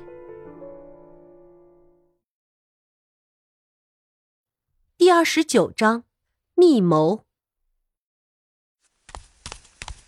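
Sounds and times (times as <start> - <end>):
speech: 5.1 - 7.3
clattering footsteps: 8.9 - 10.0.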